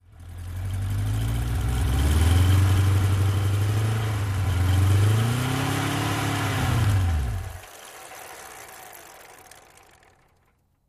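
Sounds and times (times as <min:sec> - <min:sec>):
Kawasaki 750 motorcycle engine idling and revving: 0:00.0 - 0:10.8
motorcycle drive wheel spinning freely to a stop: 0:02.6 - 0:10.8.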